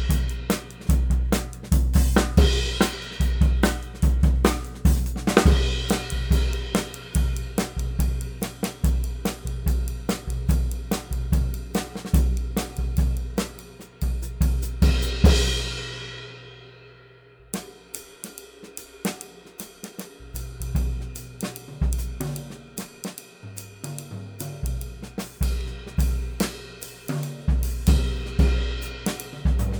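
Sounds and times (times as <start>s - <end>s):
cymbal: 0.0s - 29.7s.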